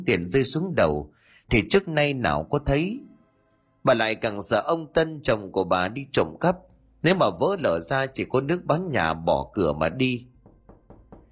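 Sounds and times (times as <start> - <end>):
speech: 0.0 - 3.1, 3.8 - 10.3
knocking on a door: 10.3 - 11.2.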